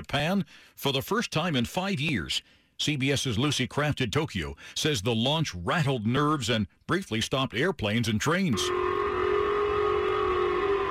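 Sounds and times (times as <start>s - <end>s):
speech: 0.1s - 8.9s
Japanese civil alert siren blaring: 8.6s - 10.9s.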